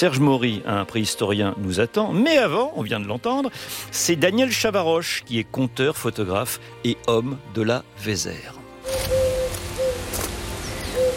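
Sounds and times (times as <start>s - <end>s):
speech: 0.0s - 9.2s
turtle dove cooing: 8.8s - 11.1s.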